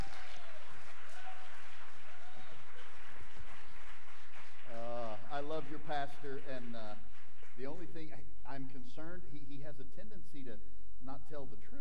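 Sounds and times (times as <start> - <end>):
church congregation applauding to welcome a visiting pastor at a Sunday service: 0.0 - 8.3
speech: 5.4 - 11.7.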